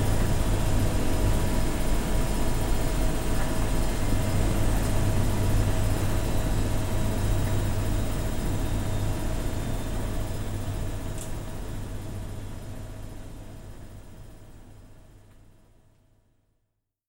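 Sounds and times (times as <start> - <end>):
laundrette ambience: 0.0 - 12.2.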